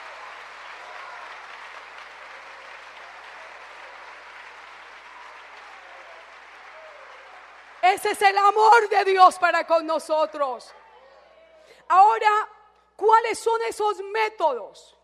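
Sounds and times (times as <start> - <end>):
audience applause: 0.0 - 11.1
speech: 7.9 - 10.8, 11.9 - 15.0.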